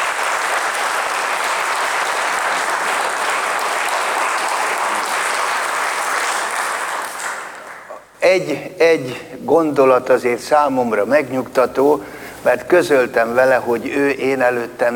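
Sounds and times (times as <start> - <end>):
audience applause: 0.0 - 8.0
speech: 8.3 - 14.9.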